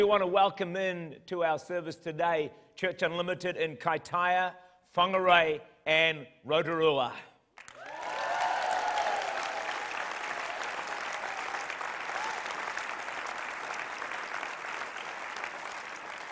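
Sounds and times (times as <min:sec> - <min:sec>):
speech: 0:00.0 - 0:07.3
audience cheering and applauding: 0:07.6 - 0:16.2.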